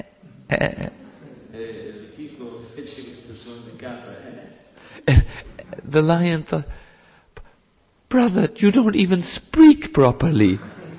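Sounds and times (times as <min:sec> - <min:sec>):
person imitating a goat bleat: 0:00.0 - 0:01.0
speech: 0:00.0 - 0:01.8, 0:05.0 - 0:06.8, 0:08.1 - 0:10.8.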